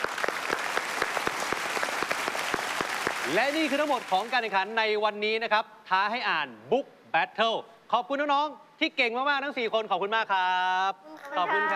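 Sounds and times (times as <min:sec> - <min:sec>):
applause: 0:00.0 - 0:04.8
speech: 0:03.3 - 0:11.7.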